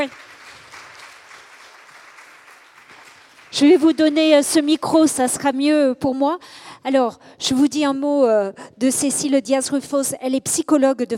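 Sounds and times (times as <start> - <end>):
speech: 0.0 - 0.3, 3.5 - 11.1
audience applause welcoming a guest at a talk: 0.0 - 4.3.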